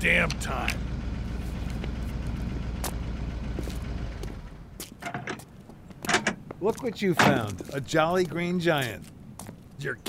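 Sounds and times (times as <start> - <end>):
speech: 0.0 - 0.9, 6.6 - 9.2, 9.8 - 10.0
blue truck engine sputtering in the distance: 0.0 - 9.8
clunks and rattles: 0.2 - 7.7.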